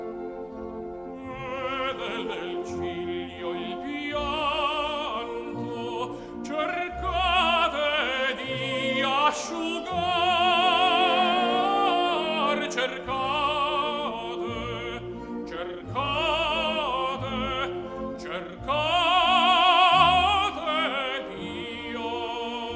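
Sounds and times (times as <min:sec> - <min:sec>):
tenor singing: 0:00.0 - 0:22.7.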